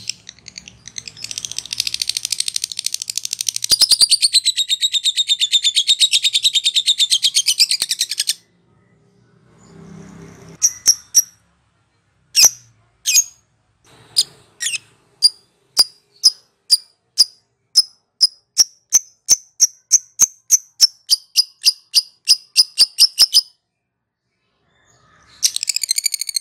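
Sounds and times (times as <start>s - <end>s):
lovebird chattering: 0.0s - 8.4s, 10.6s - 11.4s, 12.4s - 13.4s, 14.0s - 23.5s.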